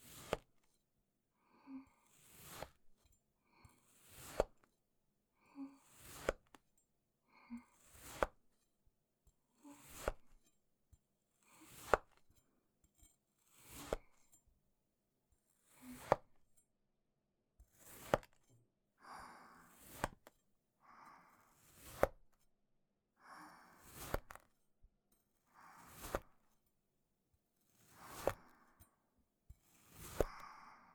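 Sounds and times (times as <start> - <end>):
cutting sand clay: 0.0 - 0.5, 2.1 - 2.8, 4.0 - 4.6, 5.9 - 6.6, 7.8 - 8.4, 9.7 - 10.4, 11.6 - 12.2, 13.5 - 14.2, 15.7 - 16.3, 17.7 - 18.4, 19.7 - 20.3, 21.6 - 22.2, 23.8 - 24.5, 25.7 - 26.5, 27.7 - 28.7, 29.6 - 30.8.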